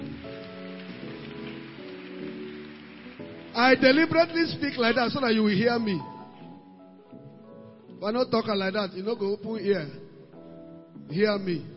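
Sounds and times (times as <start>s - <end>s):
audience clapping hands: 0.0s - 5.4s
speech: 3.6s - 6.1s, 8.0s - 10.0s, 11.1s - 11.7s.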